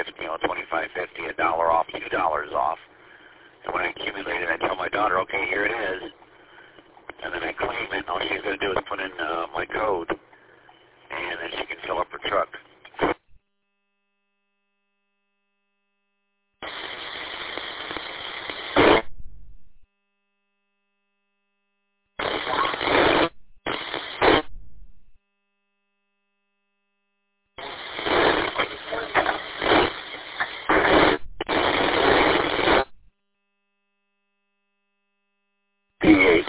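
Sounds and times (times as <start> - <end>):
speech: 0.0 - 2.9, 3.6 - 6.2, 7.2 - 10.3, 11.1 - 13.1
tinny hissing radio static as a transceiver is tuned: 0.0 - 13.4, 16.6 - 19.8, 22.2 - 25.2, 27.6 - 33.1, 36.0 - 36.4.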